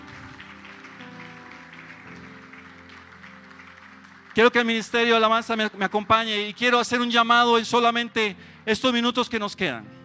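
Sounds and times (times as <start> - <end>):
audience applauding: 0.0 - 7.1
speech: 4.4 - 10.0.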